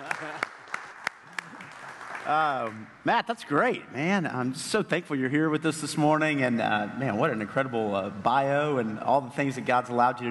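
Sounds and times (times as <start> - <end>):
audience applause at a morning gathering: 0.0 - 2.8
speech: 2.3 - 10.2.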